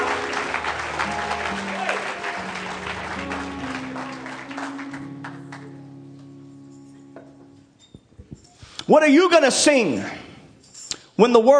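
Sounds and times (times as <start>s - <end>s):
audience clapping hands: 0.0s - 6.1s
speech: 8.9s - 10.2s, 11.2s - 11.5s.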